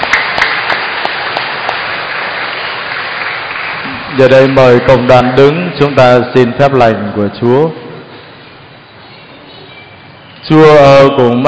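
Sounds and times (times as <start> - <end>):
loud applause: 0.0 - 6.5
speech: 4.2 - 7.8, 10.5 - 11.4.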